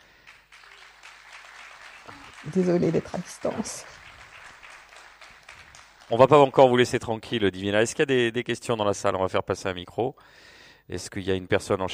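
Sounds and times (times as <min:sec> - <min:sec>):
audience applause: 0:00.0 - 0:07.0
speech: 0:02.1 - 0:04.0, 0:06.1 - 0:11.9.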